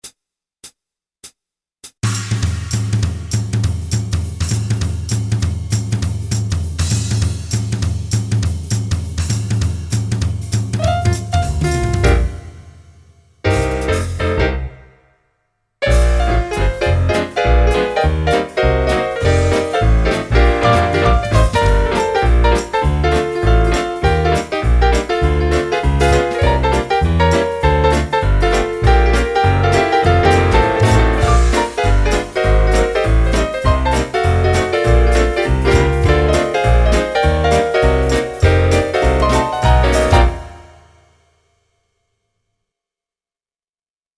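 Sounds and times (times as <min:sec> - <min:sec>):
instrumental music: 0:02.0 - 0:15.1, 0:15.8 - 0:41.2.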